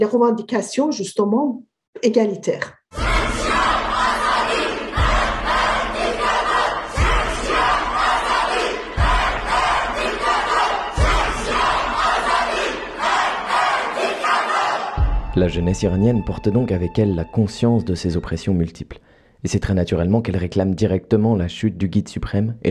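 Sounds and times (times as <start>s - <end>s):
speech: 0.0s - 3.3s, 15.4s - 22.6s
rhythmic stomp or drum hit: 2.9s - 14.1s, 15.0s - 16.2s
protest crowd chanting a slogan in unison: 2.9s - 15.2s.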